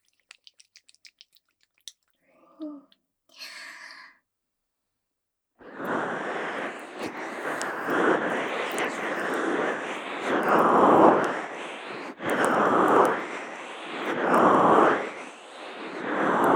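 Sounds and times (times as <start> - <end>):
ear massage sounds: 5.7 - 16.5.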